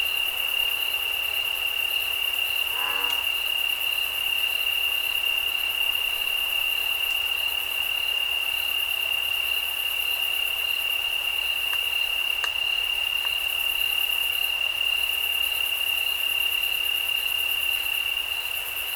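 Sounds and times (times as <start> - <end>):
night insect chorus in the Santa Cruz Mountains: 0.0 - 18.9
faint ticks: 2.8 - 3.3.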